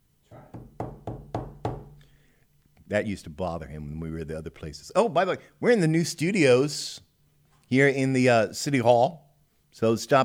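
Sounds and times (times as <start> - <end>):
banging on a table: 0.6 - 2.0
speech: 2.9 - 7.1, 7.7 - 10.2.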